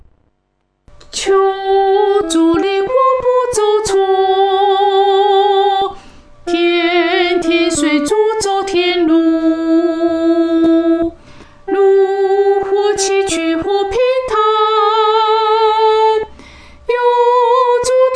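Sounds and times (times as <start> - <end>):
solo singing: 1.1 - 16.3, 16.9 - 18.1.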